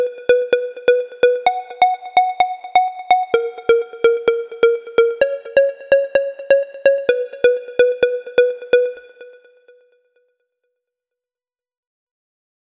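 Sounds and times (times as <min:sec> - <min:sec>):
melody in D sharp: 0:00.0 - 0:09.5.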